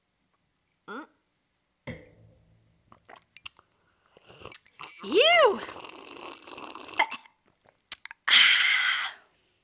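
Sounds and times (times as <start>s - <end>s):
person gulping a shot of tequila: 2.9s - 8.2s
speech: 5.0s - 5.8s.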